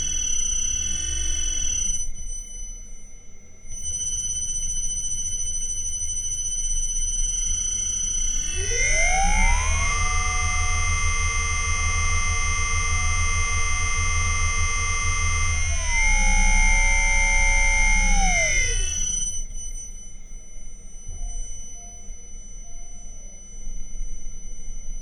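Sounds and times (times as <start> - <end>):
Liebherr motor accelerating from zero to 2600 rpm with field weakening: 0.0 - 1.8, 8.3 - 19.4.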